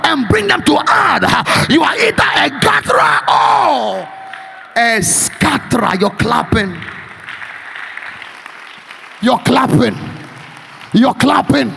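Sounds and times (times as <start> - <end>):
man preaching loudly: 0.0 - 6.8, 9.2 - 10.2, 10.9 - 11.7
speech: 0.1 - 4.2, 4.8 - 7.0, 9.2 - 10.1, 10.9 - 11.7
audience clapping: 4.1 - 11.7.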